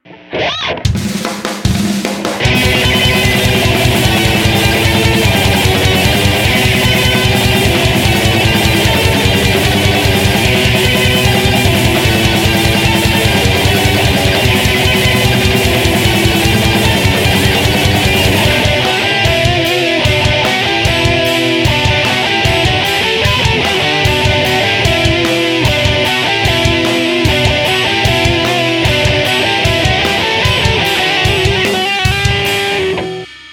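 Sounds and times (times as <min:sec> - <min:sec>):
instrumental prelude: 0:00.1 - 0:33.5.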